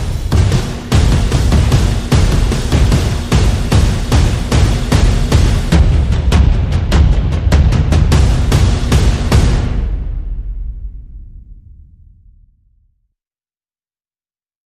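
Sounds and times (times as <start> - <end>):
percussion: 0.0 - 11.6.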